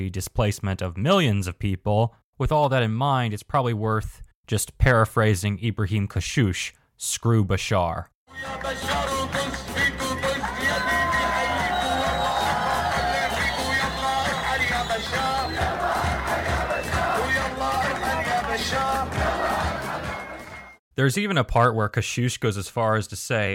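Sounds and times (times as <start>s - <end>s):
speech: 0.0s - 9.9s, 21.0s - 23.5s
crowd cheering: 8.4s - 20.8s.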